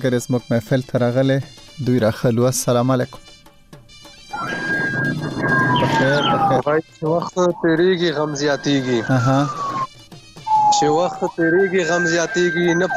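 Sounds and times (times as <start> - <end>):
speech: 0.0 - 3.3, 4.4 - 9.6, 10.7 - 12.9
ambulance siren: 4.2 - 12.9.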